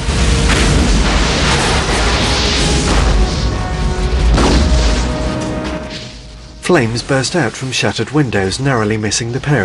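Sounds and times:
explosions around an oil plant: 0:00.0 - 0:07.5
speech: 0:06.7 - 0:09.6.

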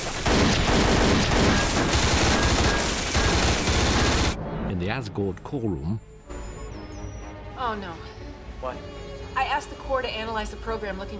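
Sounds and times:
automatic gunfire from soldiers' gun positions: 0:00.0 - 0:04.4
speech: 0:05.0 - 0:06.2, 0:07.6 - 0:11.1.

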